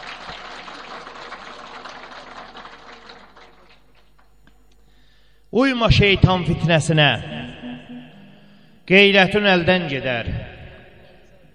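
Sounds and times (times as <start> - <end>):
gathering clapping in honour of the elders: 0.0 - 4.6
speech: 5.5 - 7.4, 8.9 - 10.4.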